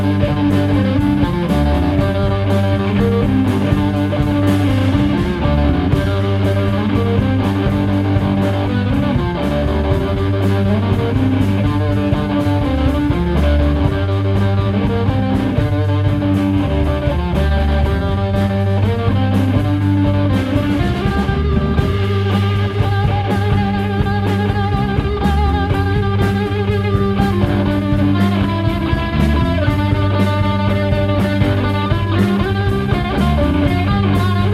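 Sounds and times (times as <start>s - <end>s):
noisy vibrato riff: 0.0s - 34.5s.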